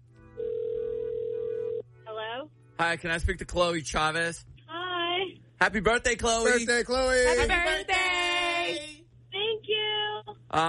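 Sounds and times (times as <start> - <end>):
faint hum: 0.0 - 10.6
telephone tone on an outgoing call: 0.4 - 1.8
speech: 2.8 - 4.5, 5.6 - 8.1.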